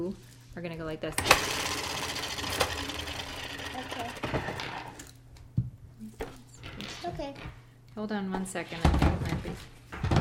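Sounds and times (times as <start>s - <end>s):
speech: 0.0s - 3.2s, 7.0s - 10.0s
spin art toy motor whirring while spinning paper: 1.2s - 5.1s.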